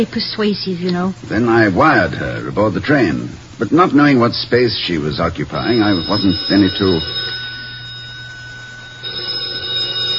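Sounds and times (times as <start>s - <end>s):
speech: 0.0s - 7.3s
low hum: 0.0s - 10.1s
telephone ringing: 5.4s - 10.1s.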